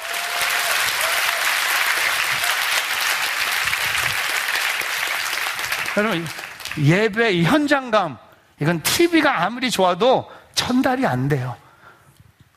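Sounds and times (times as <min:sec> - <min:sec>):
audience applause: 0:00.0 - 0:07.0
speech: 0:06.0 - 0:11.6.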